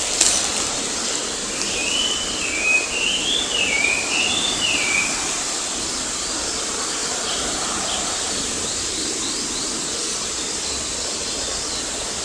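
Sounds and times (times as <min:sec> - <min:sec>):
background hiss: 0:00.0 - 0:12.2
Chinese hwamei whistled warbling song: 0:01.6 - 0:05.2.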